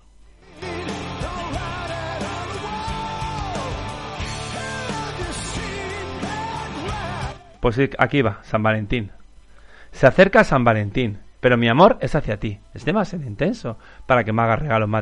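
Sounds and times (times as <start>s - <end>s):
rock album playing: 0.4s - 8.0s
speech: 7.6s - 9.2s, 10.0s - 15.0s.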